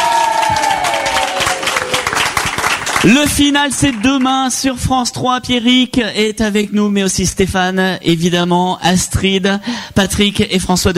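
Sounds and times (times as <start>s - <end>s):
crowd audience applauding: 0.0s - 4.6s
speech: 3.0s - 10.9s.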